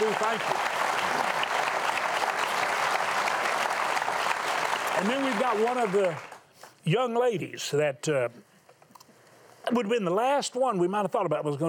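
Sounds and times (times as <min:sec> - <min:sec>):
television talk show studio audience applauding a guest pastor: 0:00.0 - 0:06.5
speech: 0:00.1 - 0:00.7, 0:05.0 - 0:08.5, 0:09.7 - 0:11.6.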